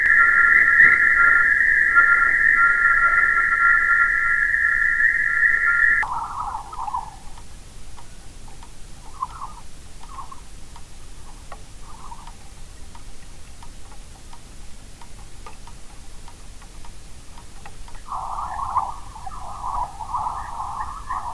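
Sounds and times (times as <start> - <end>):
EMFISIS waveform receiver audio: 0.0 - 12.9, 18.0 - 21.3.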